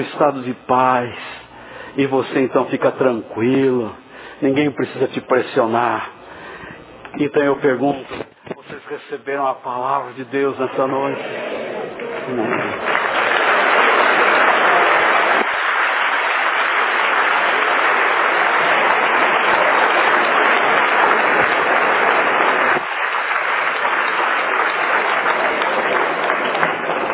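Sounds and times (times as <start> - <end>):
speech: 0.0 - 1.3, 2.0 - 6.2, 7.1 - 8.2, 8.9 - 11.5, 12.3 - 12.9
audience applause: 10.8 - 27.1.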